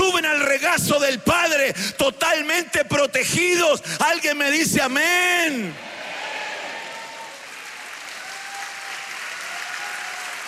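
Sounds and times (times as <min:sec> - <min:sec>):
speech: 0:00.8 - 0:06.0
audience applause: 0:05.9 - 0:10.4.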